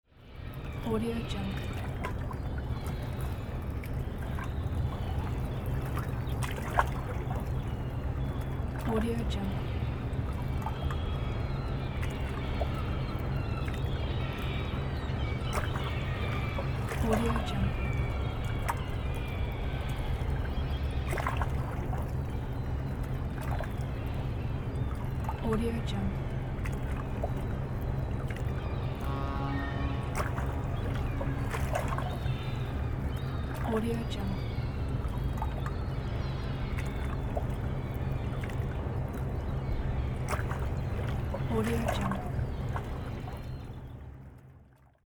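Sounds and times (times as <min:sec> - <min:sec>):
boat dock ambience: 0:00.2 - 0:44.8.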